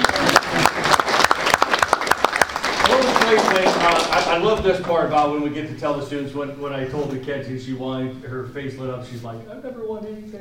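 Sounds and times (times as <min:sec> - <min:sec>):
crowd applauding: 0:00.0 - 0:05.0
speech: 0:03.9 - 0:10.4.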